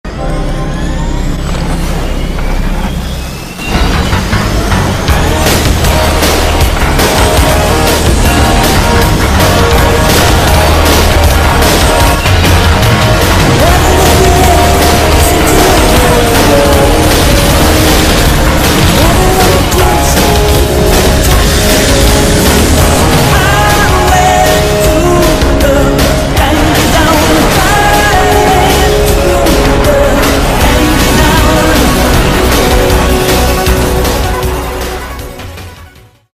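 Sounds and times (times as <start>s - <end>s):
airplane: 0.0s - 35.2s.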